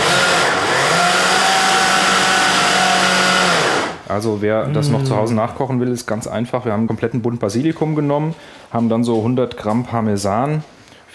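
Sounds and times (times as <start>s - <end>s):
blender mixing olive oil into pesto: 0.0s - 4.1s
speech: 4.2s - 10.7s.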